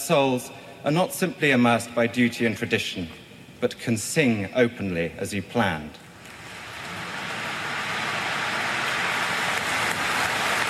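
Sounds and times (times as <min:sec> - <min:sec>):
speech: 0:00.1 - 0:06.0
applause of huge crowd outside church: 0:06.3 - 0:10.6.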